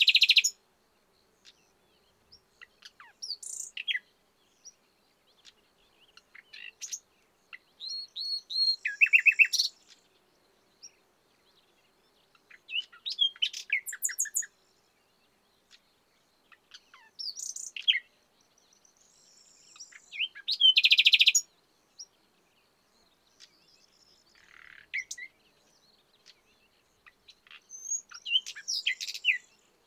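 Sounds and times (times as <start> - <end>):
common nightingale singing: 0.0 - 0.6, 1.2 - 29.8.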